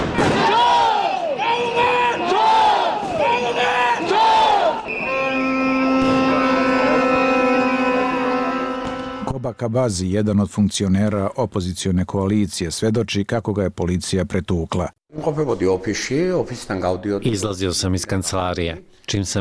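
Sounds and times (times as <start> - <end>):
protest crowd roaring: 0.1 - 9.3
high droning horn tone: 4.8 - 9.6
speech: 9.6 - 19.3.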